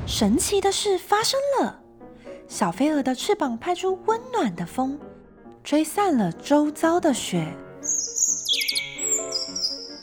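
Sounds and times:
speech: 0.1s - 1.8s, 2.5s - 8.1s
small bird singing: 7.8s - 9.9s.

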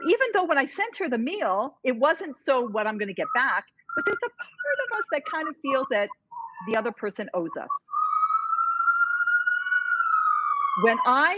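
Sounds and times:
speech: 0.4s - 8.0s, 10.8s - 11.3s
New York emergency sirens: 3.0s - 11.3s.

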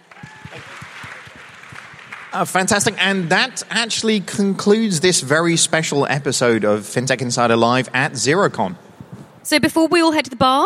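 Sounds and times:
audience applause and cheering: 0.0s - 4.0s
speech: 2.3s - 8.9s, 9.5s - 10.6s.

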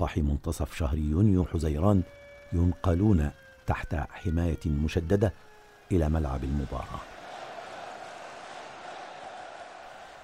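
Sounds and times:
speech: 0.0s - 7.1s
roaring stadium crowd chanting: 6.9s - 10.2s.

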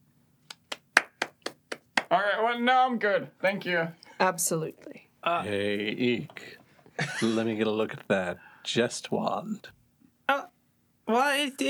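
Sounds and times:
hands clapping: 0.5s - 2.3s
speech: 2.1s - 9.8s, 11.1s - 11.6s
laughter: 7.0s - 8.0s.

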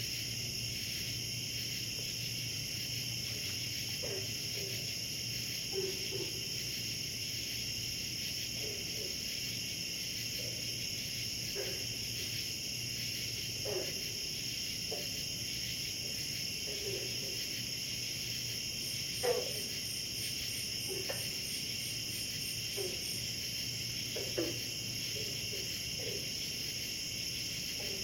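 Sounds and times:
cicadas at a pond at night: 0.0s - 28.0s
frogs at a pond at night: 0.0s - 28.0s.

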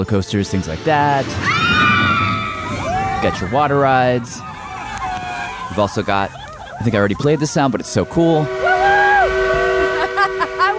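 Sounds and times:
speech: 0.0s - 2.0s, 3.2s - 4.5s, 5.8s - 8.6s
laughter: 4.9s - 8.4s, 9.8s - 10.7s
coal-burning steam engine: 7.9s - 10.7s.

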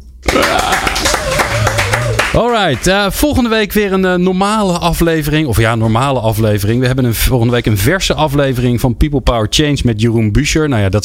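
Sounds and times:
applause: 0.2s - 2.9s
speech: 2.4s - 11.0s.

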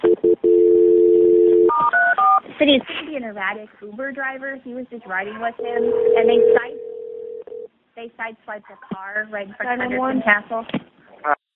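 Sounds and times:
long steady telephone tone: 0.0s - 2.4s, 5.6s - 7.7s
faint noise: 0.0s - 11.4s
speech: 2.6s - 6.9s, 8.0s - 11.4s.

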